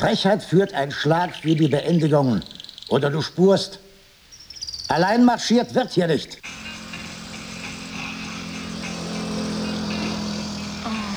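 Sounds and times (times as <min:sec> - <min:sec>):
speech: 0:00.0 - 0:03.8, 0:04.9 - 0:06.6
bus engine passing: 0:06.4 - 0:11.1.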